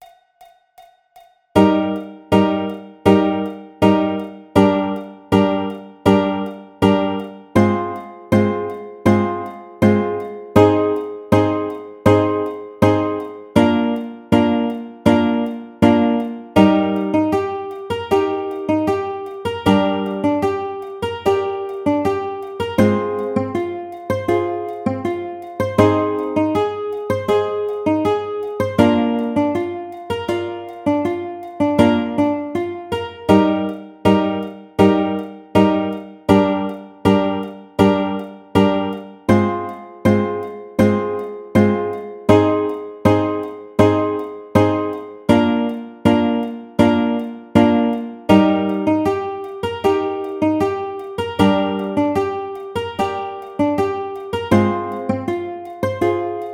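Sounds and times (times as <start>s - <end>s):
ukulele arpeggio in E flat major: 1.6s - 56.5s.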